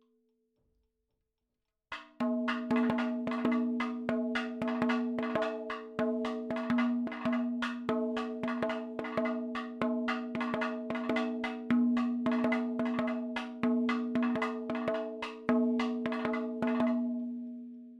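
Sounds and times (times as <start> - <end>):
madalam drum percussion: 1.9 - 17.9.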